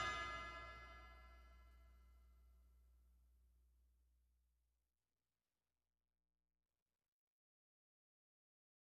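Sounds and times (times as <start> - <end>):
high drums: 0.0 - 1.3.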